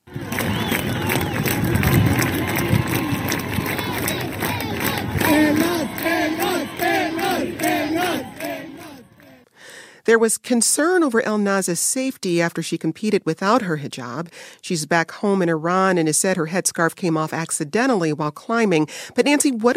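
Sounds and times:
crowd cheering and chanting at airport arrival: 0.0 - 9.4
speech: 10.1 - 19.7.

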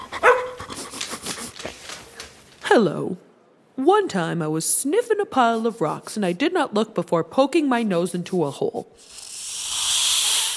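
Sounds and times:
golden retriever barking: 0.2 - 0.6
speech: 2.7 - 9.3.

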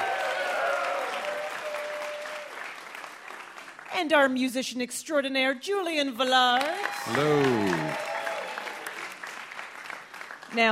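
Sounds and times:
live quiz show audience applauding VIP guests: 0.0 - 3.9, 6.6 - 10.7
speech: 4.0 - 8.1, 10.5 - 10.7.

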